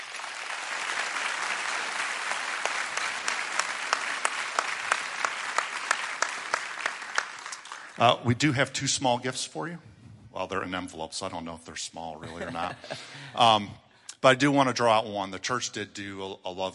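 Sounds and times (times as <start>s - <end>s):
audience applauding: 0.0s - 8.0s
speech: 8.0s - 16.7s
laughter: 12.2s - 13.5s.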